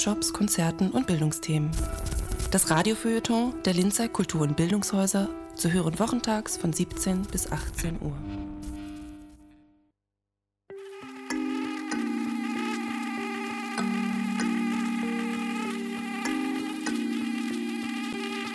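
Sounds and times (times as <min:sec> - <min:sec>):
speech: 0:00.0 - 0:08.4
mosquito buzzing: 0:10.8 - 0:18.5.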